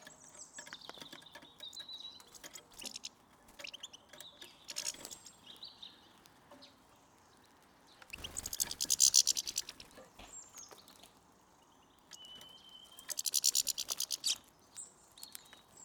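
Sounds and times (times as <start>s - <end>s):
European goldfinch Carduelis carduelis calls: 0.0s - 5.7s, 8.1s - 10.3s, 12.1s - 14.4s.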